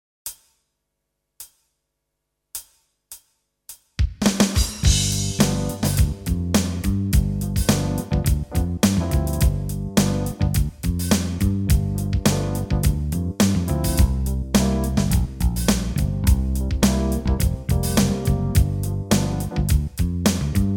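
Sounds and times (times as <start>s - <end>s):
backing music: 4.1s - 20.7s.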